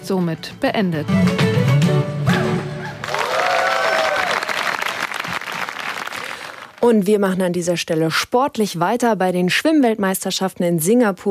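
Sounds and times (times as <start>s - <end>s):
speech: 0.1s - 1.7s, 6.9s - 11.2s
audience clapping after a concert: 3.0s - 6.8s.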